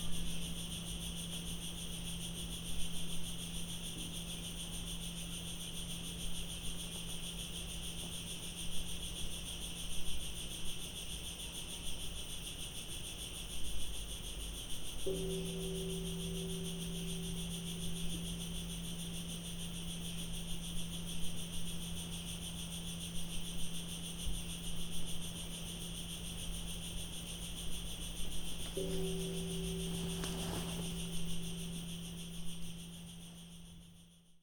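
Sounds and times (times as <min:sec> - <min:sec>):
evening cicadas on Alishan: 0:00.0 - 0:34.4
bell ringing on Alishan: 0:28.7 - 0:32.8.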